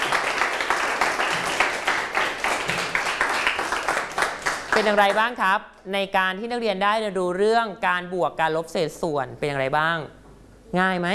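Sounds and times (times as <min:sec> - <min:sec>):
classroom of students applauding: 0:00.0 - 0:05.3
speech: 0:04.8 - 0:11.1.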